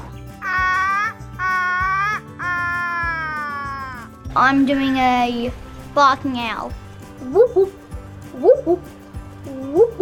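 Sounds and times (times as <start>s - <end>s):
child imitating Australian raven call: 0.4s - 4.1s
speech: 4.4s - 7.8s, 8.4s - 9.0s.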